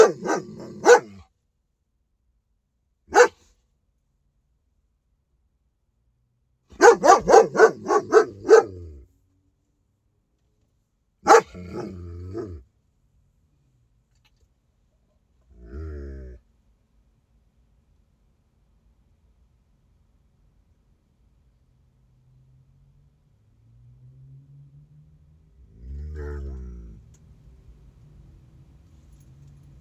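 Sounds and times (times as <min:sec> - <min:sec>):
domestic dog barking: 0:00.0 - 0:01.3, 0:03.1 - 0:03.5, 0:06.7 - 0:09.0, 0:11.2 - 0:12.6.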